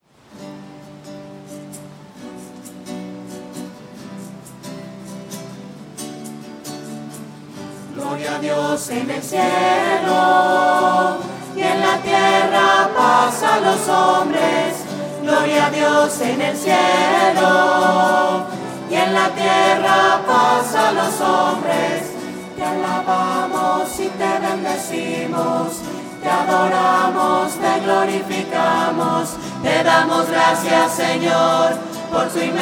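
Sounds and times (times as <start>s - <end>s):
voices singing: 7.9s - 32.5s.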